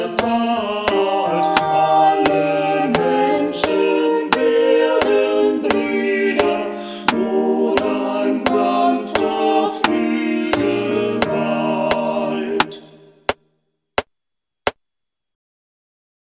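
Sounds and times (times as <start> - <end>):
piano: 0.0 - 12.9
choir singing classical piece: 0.0 - 13.1.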